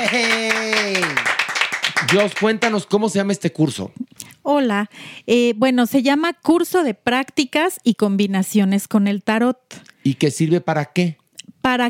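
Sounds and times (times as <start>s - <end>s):
speech: 0.0s - 0.6s, 2.1s - 11.8s
audience applause: 0.0s - 2.8s.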